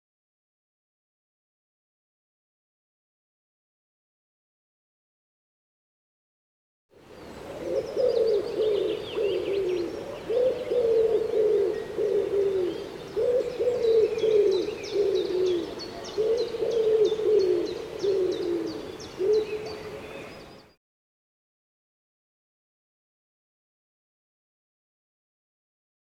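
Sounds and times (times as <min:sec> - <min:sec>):
Common Wood Pigeon cooing: 0:07.4 - 0:20.4.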